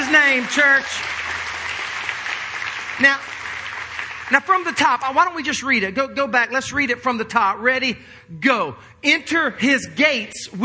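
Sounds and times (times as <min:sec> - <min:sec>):
church audience clapping: 0:00.0 - 0:05.3
speech: 0:00.2 - 0:01.2, 0:03.0 - 0:03.3, 0:04.3 - 0:10.6.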